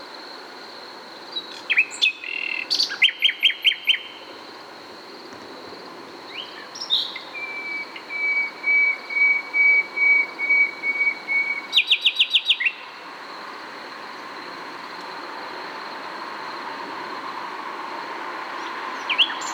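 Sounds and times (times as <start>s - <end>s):
Common nightingale singing, Luscinia megarhynchos: 1.3s - 4.2s, 6.3s - 12.9s, 19.0s - 19.5s.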